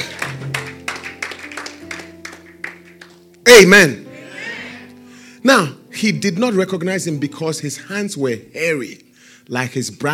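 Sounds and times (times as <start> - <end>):
audience clapping: 0.0 - 3.3
speech: 3.5 - 4.0, 5.4 - 10.1.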